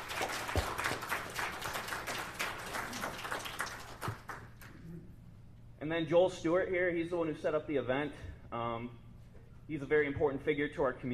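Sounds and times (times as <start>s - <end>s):
audience applause: 0.0s - 4.7s
speech: 5.9s - 9.0s, 9.7s - 11.1s.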